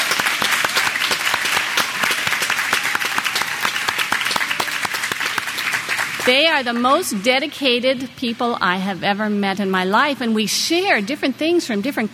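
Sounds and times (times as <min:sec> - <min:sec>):
loud round of applause: 0:00.0 - 0:07.2
speech: 0:06.3 - 0:12.1.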